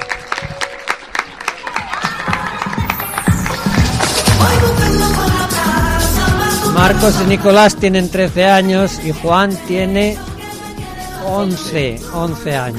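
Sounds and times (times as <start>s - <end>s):
audience applause: 0.0s - 5.6s
speech: 6.8s - 10.3s, 11.2s - 12.7s.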